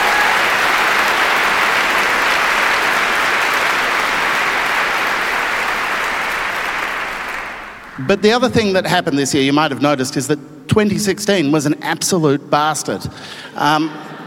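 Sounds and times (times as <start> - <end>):
audience applause: 0.0 - 8.2
speech: 8.1 - 14.1.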